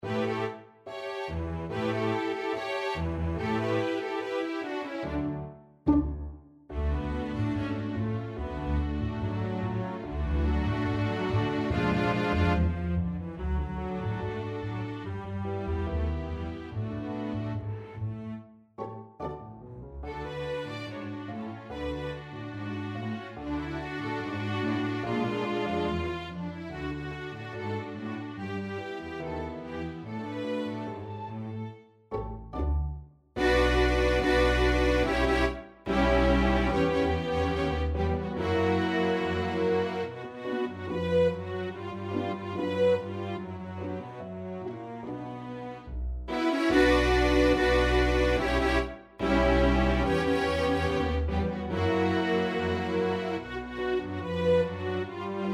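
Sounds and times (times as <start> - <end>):
tango played on strings: 0.0 - 55.5.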